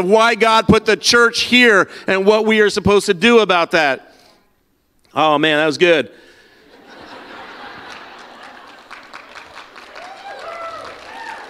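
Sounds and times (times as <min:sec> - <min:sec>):
speech: 0:00.0 - 0:04.1, 0:05.2 - 0:06.3
people laughing: 0:06.6 - 0:09.8
crowd clapping: 0:07.5 - 0:11.4.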